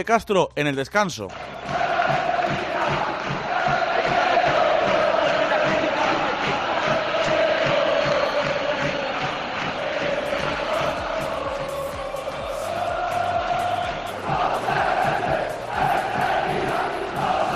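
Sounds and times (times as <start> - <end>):
speech: 0.0 - 2.6
large stadium crowd shouting protest chants: 1.3 - 17.5.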